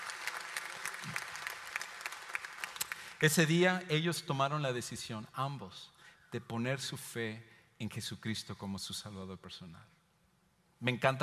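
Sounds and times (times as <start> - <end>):
audience applause: 0.0 - 3.2
speech: 3.2 - 10.0, 10.8 - 11.2.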